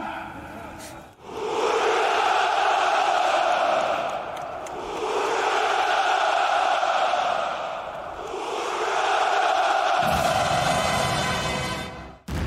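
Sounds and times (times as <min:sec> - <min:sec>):
crowd shouting hurrah at the Victory Day parade on Red Square in Moscow: 0:01.2 - 0:11.8.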